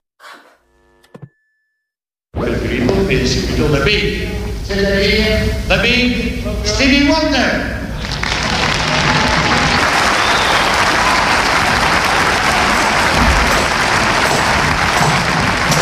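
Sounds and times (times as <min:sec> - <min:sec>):
speech: 0:02.4 - 0:07.8
audience clapping hands: 0:08.0 - 0:15.7.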